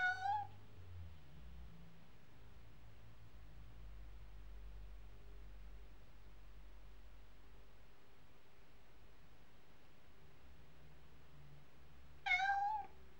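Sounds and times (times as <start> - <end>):
domestic cat meowing: 0.0 - 0.5, 12.2 - 13.0.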